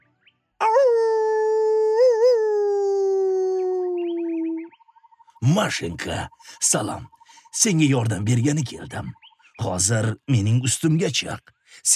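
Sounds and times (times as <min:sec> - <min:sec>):
wolf howling: 0:00.6 - 0:04.6
speech: 0:05.5 - 0:11.9.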